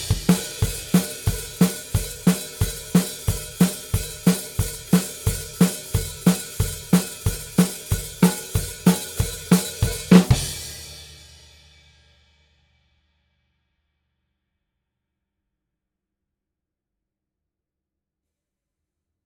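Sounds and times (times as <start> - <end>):
drums: 0.0 - 13.2.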